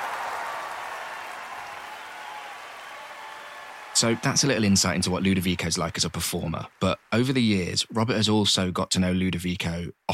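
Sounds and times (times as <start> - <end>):
large concert audience applause: 0.0 - 7.8
speech: 4.0 - 10.1.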